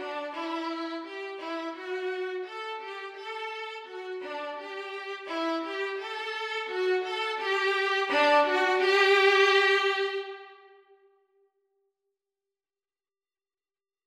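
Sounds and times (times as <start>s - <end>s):
violin duet: 0.0s - 10.8s.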